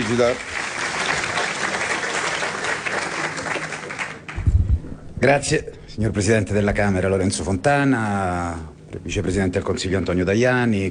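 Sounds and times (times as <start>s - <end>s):
audience applause: 0.0s - 4.5s
speech: 0.1s - 0.6s, 5.2s - 10.8s
low thump: 4.4s - 5.1s.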